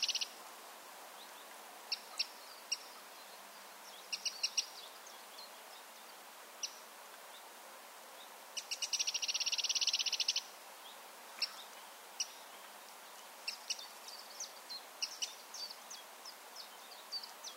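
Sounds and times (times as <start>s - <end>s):
Eurasian wren Troglodytes troglodytes calling with dry clicking tick notes: 0.0s - 0.4s, 1.3s - 3.2s, 3.9s - 5.8s, 6.6s - 6.9s, 8.6s - 10.6s, 11.3s - 12.8s, 13.4s - 17.5s.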